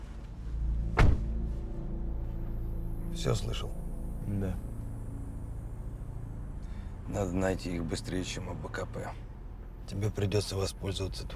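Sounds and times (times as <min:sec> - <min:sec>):
steady low rumble: 0:00.0 - 0:11.3
car door shutting: 0:01.0 - 0:01.4
speech: 0:03.2 - 0:04.7, 0:07.1 - 0:09.2, 0:09.9 - 0:11.3.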